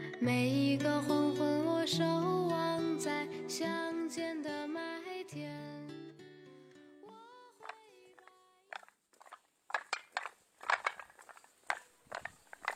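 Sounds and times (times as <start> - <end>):
speech: 0.2 - 4.8
footsteps on a stone slab lane in Zhouzhuang: 7.6 - 12.7.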